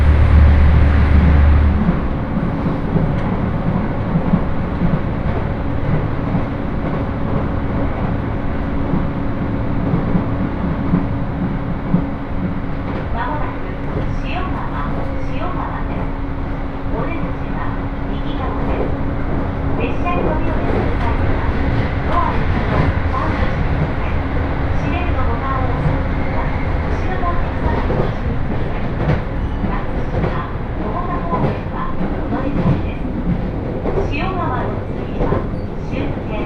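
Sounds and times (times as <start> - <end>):
Senseki-Tohoku Line rapid service train rumbling toward Sendai: 0.0 - 36.4
voices murmuring: 12.9 - 36.4.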